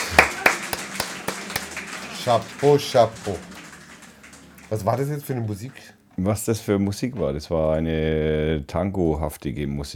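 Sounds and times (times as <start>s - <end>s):
live applause handclaps: 0.0s - 6.0s
speech: 2.2s - 3.5s, 4.7s - 9.9s.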